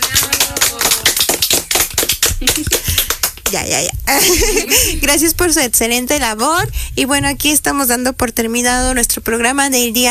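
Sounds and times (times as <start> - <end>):
applause: 0.0 - 3.6
speech: 3.5 - 10.1.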